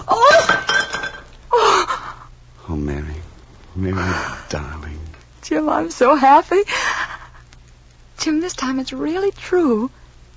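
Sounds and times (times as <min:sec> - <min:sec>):
dropped platter smashing: 0:00.1 - 0:01.4
speech: 0:03.8 - 0:07.0, 0:08.2 - 0:10.0.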